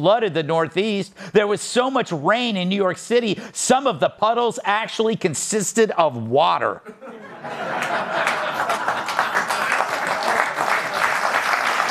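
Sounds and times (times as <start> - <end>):
speech: 0.0 - 8.3
laughter: 6.8 - 11.4
audience applause: 7.8 - 11.9.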